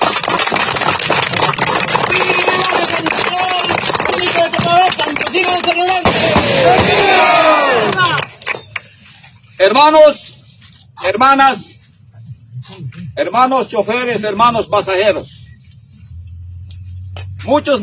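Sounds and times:
large crowd applauding: 0.0 - 8.9
large crowd cheering and shouting: 6.2 - 8.2
speech: 9.6 - 10.3, 11.0 - 11.7, 12.6 - 15.4, 17.4 - 17.8.

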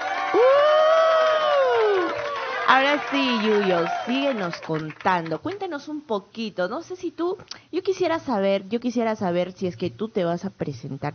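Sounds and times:
long sustained whoop: 0.0 - 2.6
crowd cheering: 0.0 - 5.5
speech: 2.7 - 11.1.

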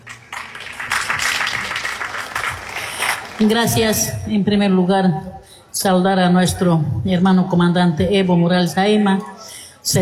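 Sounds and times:
applause: 0.0 - 3.6
speech: 3.4 - 9.9.

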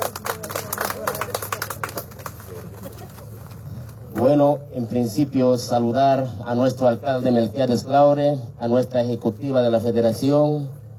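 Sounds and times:
audience applause: 0.0 - 2.8
speech: 4.2 - 10.8.

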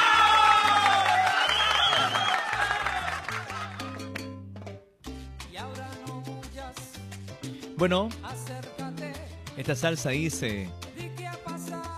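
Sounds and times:
cheering: 0.0 - 4.0
applause: 0.0 - 4.3
speech: 7.8 - 8.4, 9.6 - 10.8.

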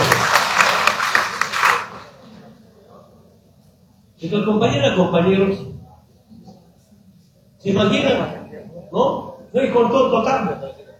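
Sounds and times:
rally audience rhythmic clapping at a political rally in Bolivia: 0.0 - 2.1
speech: 4.2 - 5.7, 7.6 - 10.8.

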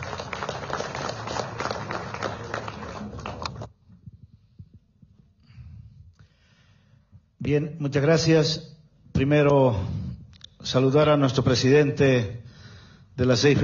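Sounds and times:
audience applause: 0.0 - 3.7
speech: 7.4 - 10.0, 10.6 - 12.4, 13.2 - 13.6.

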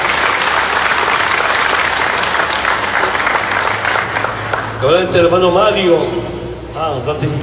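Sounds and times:
applause from an assembly: 0.0 - 4.8
speech: 4.8 - 6.2, 6.8 - 7.4.

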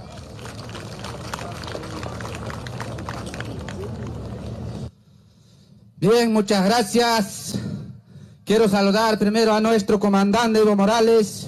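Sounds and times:
audience applause: 0.0 - 4.8
speech: 6.0 - 7.4, 8.5 - 11.4.

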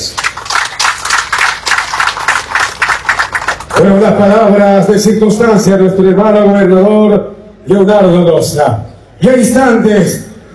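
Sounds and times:
crowd applauding: 0.0 - 4.6
speech: 3.8 - 10.3.

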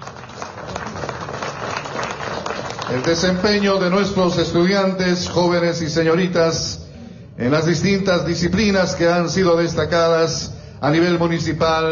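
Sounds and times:
applause at a municipal award ceremony: 0.0 - 3.7
speech: 2.9 - 6.8, 7.4 - 11.9.

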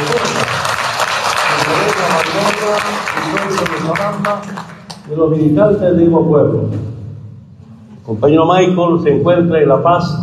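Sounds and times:
crowd applause for a departmental governor: 0.0 - 5.1
speech: 2.7 - 7.0, 8.0 - 10.2.

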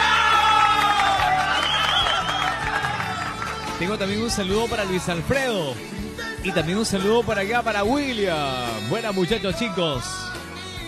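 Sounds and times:
applause and cheering: 0.0 - 5.2
speech: 3.8 - 10.2.

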